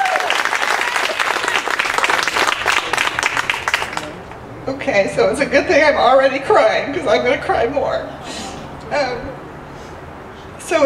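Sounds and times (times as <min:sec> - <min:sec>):
audience applause: 0:00.0 - 0:04.4
speech: 0:04.7 - 0:09.4.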